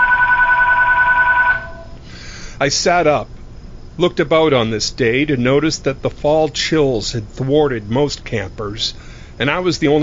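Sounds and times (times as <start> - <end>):
telephone ringing: 0.0 - 2.0
speech: 2.6 - 3.3, 4.0 - 10.0.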